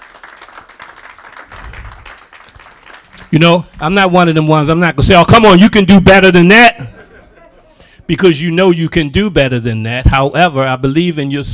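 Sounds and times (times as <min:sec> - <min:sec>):
audience hand clapping: 0:00.0 - 0:03.8
speech: 0:03.3 - 0:06.9, 0:08.1 - 0:11.5
laughter: 0:06.4 - 0:08.5.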